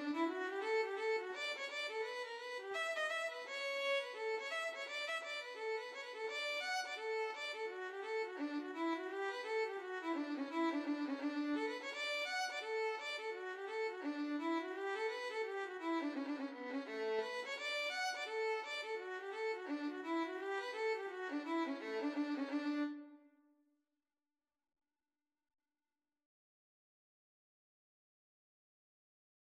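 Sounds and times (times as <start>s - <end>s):
violin: 0.0s - 23.2s.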